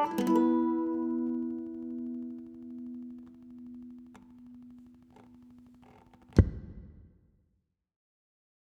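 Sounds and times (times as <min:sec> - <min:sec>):
mandolin waltz: 0:00.0 - 0:04.8.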